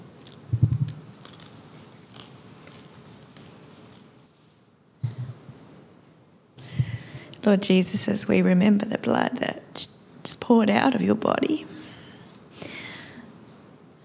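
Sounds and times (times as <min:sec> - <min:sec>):
chewing a cracker: 0:00.2 - 0:04.0
speech: 0:07.4 - 0:11.7.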